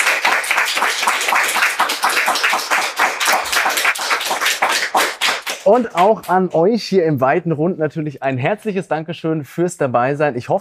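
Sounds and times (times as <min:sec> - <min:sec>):
live audience applause: 0:00.0 - 0:06.5
speech: 0:05.7 - 0:10.5.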